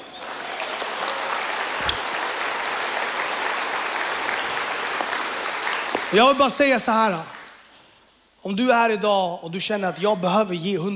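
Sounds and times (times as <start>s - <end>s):
applause: 0.0s - 7.8s
speech: 6.1s - 7.4s, 8.4s - 10.9s.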